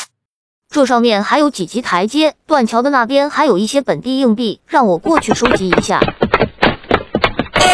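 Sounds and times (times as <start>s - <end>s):
speech: 0.7s - 6.1s
video game quick tapping steps: 5.0s - 7.6s.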